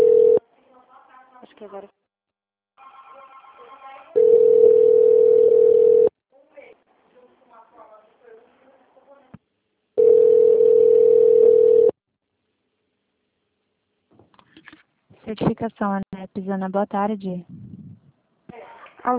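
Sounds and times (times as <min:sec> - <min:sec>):
telephone dial tone on a call to a Brazilian company's extension line: 0:00.0 - 0:00.4, 0:04.2 - 0:06.1, 0:10.0 - 0:12.0
speech: 0:01.6 - 0:02.0, 0:15.6 - 0:17.6.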